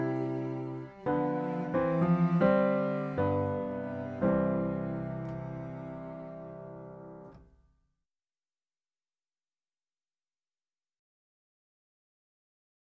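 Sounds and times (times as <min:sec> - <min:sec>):
chorus piano: 0:00.0 - 0:07.5.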